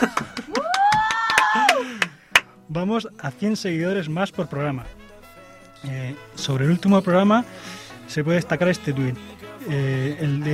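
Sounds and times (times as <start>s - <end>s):
speech: 0.0s - 0.3s, 2.8s - 5.0s, 5.8s - 10.5s
scattered applause: 0.0s - 2.5s
rising-and-falling vocal whoop: 0.5s - 2.1s.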